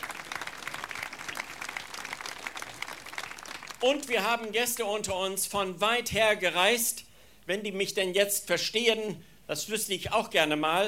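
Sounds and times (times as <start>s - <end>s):
audience applause: 0.0s - 4.1s
speech: 3.8s - 10.8s.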